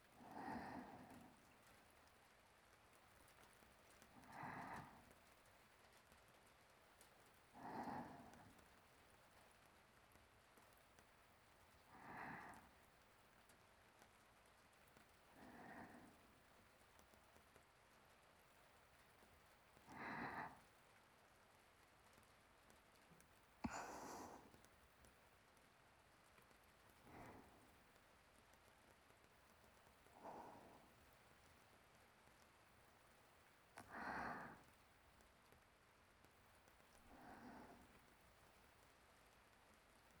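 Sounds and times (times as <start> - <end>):
sleeping breathing: 0.1 - 2.1, 4.0 - 5.4, 7.5 - 8.7, 11.8 - 12.8, 15.3 - 16.4, 19.8 - 20.7, 23.6 - 24.7, 26.9 - 27.8, 30.0 - 31.4, 33.8 - 34.8, 36.9 - 38.2.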